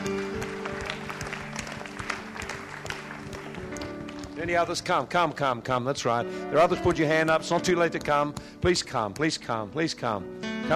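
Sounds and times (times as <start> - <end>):
audience clapping: 0.0 - 5.4
speech: 4.4 - 10.7.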